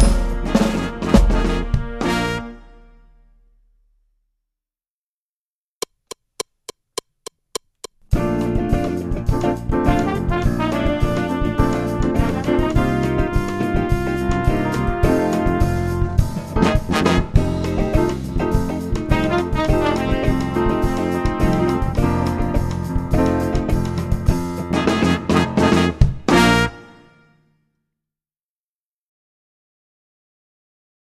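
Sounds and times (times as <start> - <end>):
samba percussion: 0.0 - 2.4, 8.4 - 26.6.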